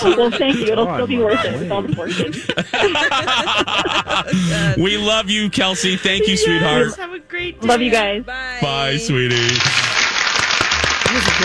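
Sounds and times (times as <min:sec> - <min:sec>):
speech: 0:00.0 - 0:09.8, 0:11.1 - 0:11.4
laughter: 0:00.0 - 0:11.4
applause: 0:09.3 - 0:11.4.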